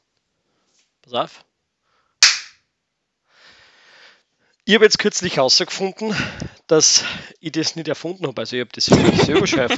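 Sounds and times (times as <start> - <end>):
speech: 1.0 - 1.5, 4.7 - 9.7
hand clap: 2.2 - 2.6
laughter: 8.9 - 9.7.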